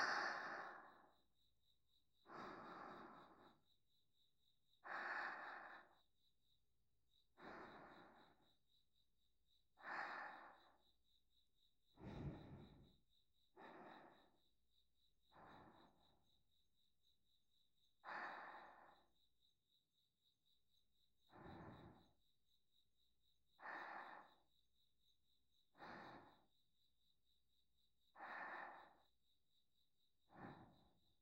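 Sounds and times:
sleep breathing on the right: 0.0 - 1.3, 2.2 - 3.7, 4.8 - 6.2, 7.2 - 8.7, 9.7 - 11.0, 11.9 - 14.6, 15.2 - 16.3, 17.9 - 19.2, 21.2 - 22.2, 23.5 - 24.6, 25.6 - 26.7, 28.1 - 29.3, 30.2 - 31.1.

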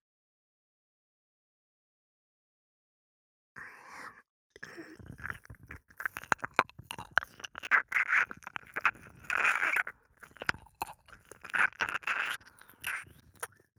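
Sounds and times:
ear licking sounds: 4.6 - 13.6
person speaking: 5.2 - 13.5.

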